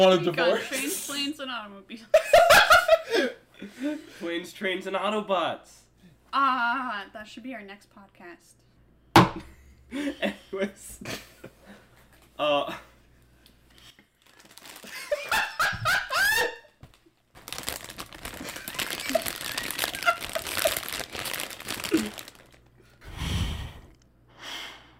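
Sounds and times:
speech: 0.0s - 8.6s, 9.2s - 11.3s, 12.4s - 12.9s
chip bag crinkling: 13.8s - 15.4s, 16.8s - 22.9s
chips being eaten: 14.2s - 15.2s, 16.9s - 22.7s
breathy sigh: 23.0s - 24.9s.

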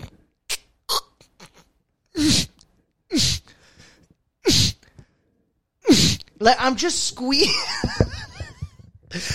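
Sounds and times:
short nasal puffs: 1.4s - 3.6s, 4.4s - 4.9s
speech: 6.4s - 8.0s.

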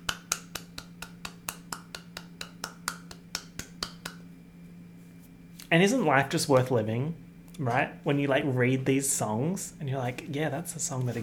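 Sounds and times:
one person clapping hands: 0.0s - 4.3s
speech: 5.7s - 11.2s.

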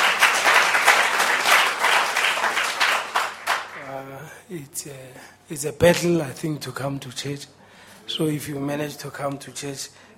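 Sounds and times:
audience applause: 0.0s - 3.8s
speech: 4.5s - 10.1s.

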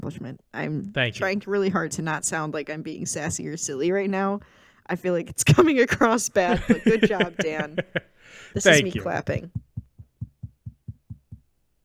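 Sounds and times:
speech: 0.0s - 9.7s
laughter: 6.1s - 9.1s
knocking on a door: 9.5s - 11.4s.

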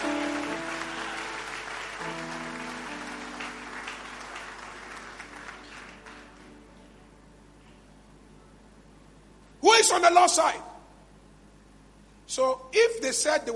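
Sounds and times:
audience applause: 0.0s - 6.6s
speech: 9.8s - 10.7s, 12.4s - 13.5s.

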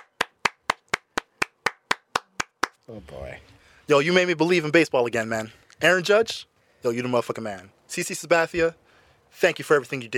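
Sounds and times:
hand clapping: 0.0s - 2.9s
speech: 2.9s - 10.1s.

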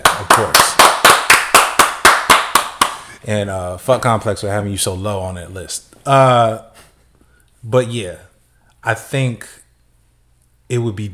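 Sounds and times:
round of applause: 0.0s - 3.1s
speech: 0.4s - 0.7s, 3.2s - 6.8s, 7.6s - 9.6s, 10.7s - 11.1s.

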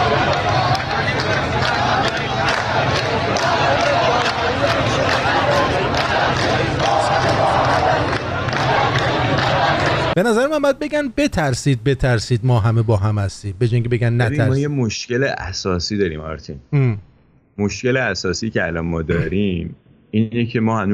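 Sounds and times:
crowd chanting slogans: 0.0s - 10.2s
speech: 10.2s - 20.9s.

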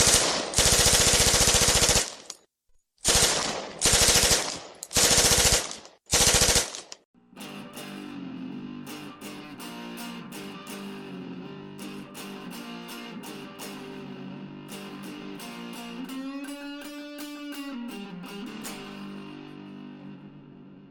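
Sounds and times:
Tommy gun machine-gun bursts: 0.0s - 2.4s, 3.0s - 7.0s
music: 7.2s - 20.9s.

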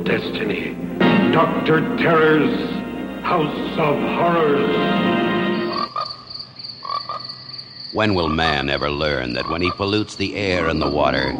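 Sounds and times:
speech: 0.0s - 5.4s, 7.9s - 11.3s
steady high-pitched trill: 0.0s - 5.9s
frogs croaking in a loud chorus: 0.0s - 11.3s.

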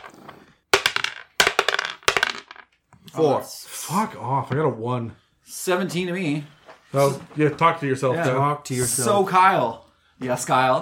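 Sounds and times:
dice clattering across a hard surface: 0.0s - 2.8s
speech: 3.1s - 10.8s.

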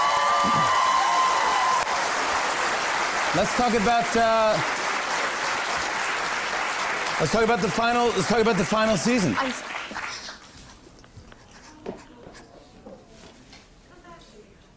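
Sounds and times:
audience applause: 0.0s - 10.4s
speech: 0.4s - 0.8s, 3.3s - 4.8s, 7.2s - 10.0s.

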